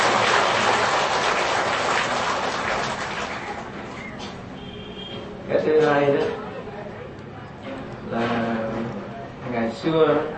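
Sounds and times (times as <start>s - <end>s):
crowd applauding: 0.0s - 4.1s
speech: 5.5s - 6.4s, 9.8s - 10.3s.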